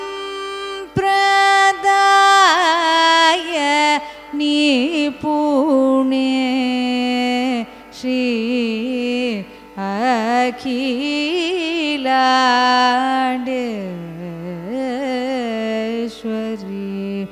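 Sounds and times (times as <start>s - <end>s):
carnatic raga music: 0.0s - 17.3s.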